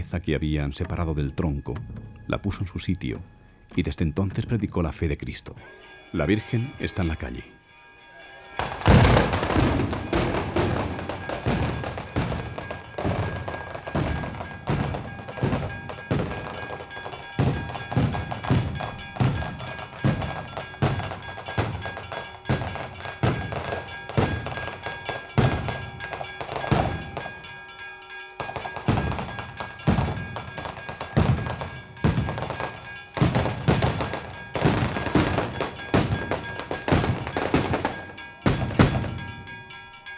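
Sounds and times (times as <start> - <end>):
speech: 0.1 - 7.6
traca firecracker string exploding: 8.6 - 27.5, 28.4 - 39.4.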